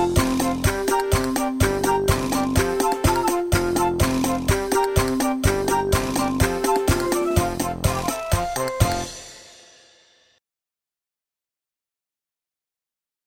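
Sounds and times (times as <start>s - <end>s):
clap: 0.2s - 9.2s.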